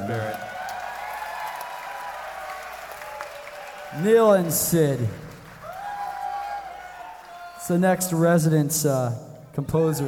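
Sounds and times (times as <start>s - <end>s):
audience round of applause: 0.0s - 7.6s
speech: 3.9s - 5.2s, 7.7s - 10.0s.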